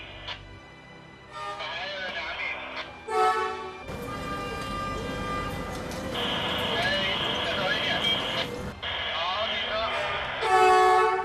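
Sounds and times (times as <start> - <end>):
large rail-replacement vehicle working on track: 1.3 - 11.2.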